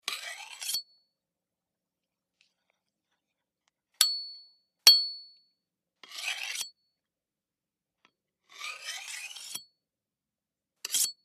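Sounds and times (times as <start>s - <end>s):
knife blade scraping: 0.0s - 1.0s, 6.0s - 6.8s, 8.4s - 9.8s, 10.8s - 11.2s.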